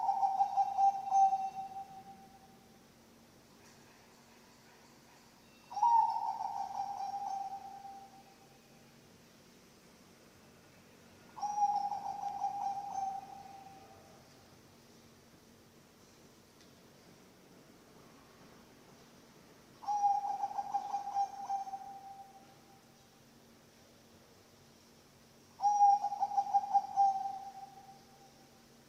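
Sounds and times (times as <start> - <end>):
zebra dove cooing: 0.0 - 2.3, 5.7 - 8.2, 11.4 - 14.1, 19.8 - 22.4, 25.6 - 28.0.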